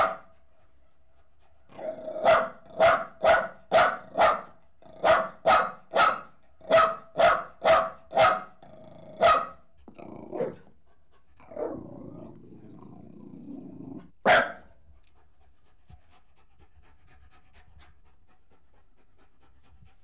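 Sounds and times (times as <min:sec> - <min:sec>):
dog barking: 0:00.0 - 0:00.3, 0:02.2 - 0:08.6, 0:09.2 - 0:09.6, 0:10.4 - 0:10.6, 0:14.2 - 0:14.7
dog growling: 0:01.7 - 0:02.3, 0:08.6 - 0:09.2, 0:09.8 - 0:10.7, 0:11.4 - 0:14.2.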